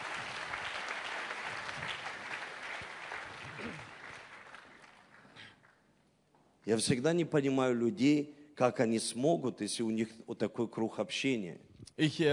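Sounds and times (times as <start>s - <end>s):
audience applause at a bilingual church gathering: 0.0s - 5.8s
speech: 6.7s - 12.3s.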